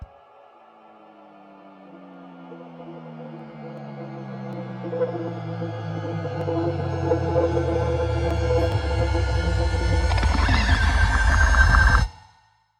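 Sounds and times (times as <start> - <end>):
riser sound effect: 2.4 - 12.1.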